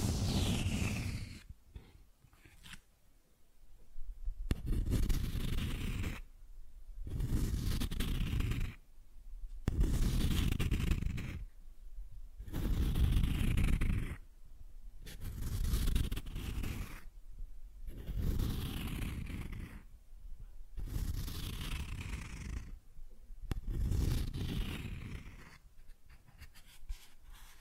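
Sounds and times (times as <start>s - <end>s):
cardboard being scratched: 0.0s - 1.4s, 4.5s - 6.2s, 7.1s - 8.8s, 9.7s - 11.4s, 12.5s - 14.2s, 15.1s - 17.1s, 17.9s - 19.8s, 20.8s - 22.7s, 23.5s - 27.6s.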